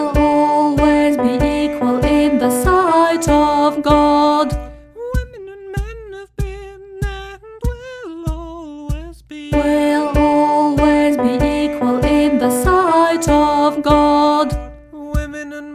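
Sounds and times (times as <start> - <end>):
choral music: 0.0 - 4.9, 9.6 - 15.0
alto singing: 0.0 - 5.1, 9.5 - 15.6.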